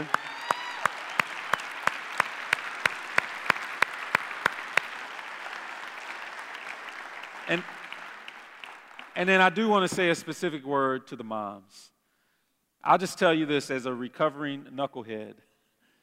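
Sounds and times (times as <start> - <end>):
audience applause: 0.0 - 9.2
speech: 7.5 - 7.8, 9.2 - 12.0, 12.8 - 15.5.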